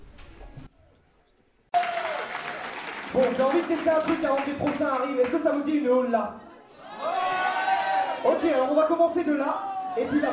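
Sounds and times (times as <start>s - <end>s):
audience applause and cheering: 1.7s - 5.6s, 6.8s - 8.7s
speech: 3.2s - 6.5s, 8.2s - 10.3s.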